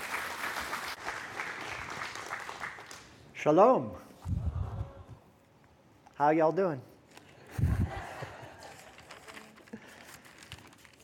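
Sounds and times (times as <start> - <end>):
church congregation applauding to welcome a speaker at a morning service: 0.0 - 3.2
speech: 3.4 - 4.4, 6.2 - 6.9.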